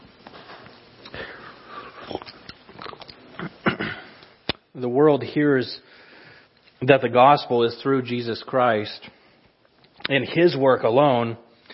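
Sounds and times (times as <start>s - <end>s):
speaker sipping and swallowing a drink mid-sermon: 1.9s - 3.5s
speech: 4.8s - 5.9s, 6.8s - 9.2s, 10.1s - 11.4s.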